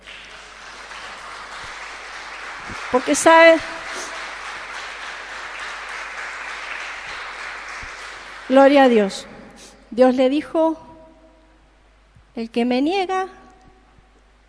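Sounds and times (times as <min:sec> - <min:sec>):
audience applauding: 0:00.0 - 0:09.0
speech: 0:02.7 - 0:03.7, 0:08.5 - 0:09.3, 0:09.9 - 0:10.8, 0:12.4 - 0:13.4.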